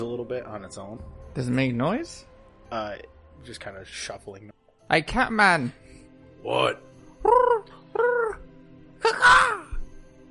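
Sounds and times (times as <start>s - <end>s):
speech: 0.0s - 7.8s
person imitating bird calls: 7.2s - 8.4s.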